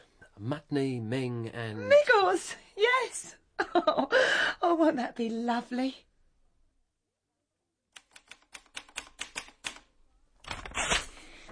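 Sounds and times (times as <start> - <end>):
speech: 0.4 - 6.1
typewriter keys clacking: 8.0 - 9.8.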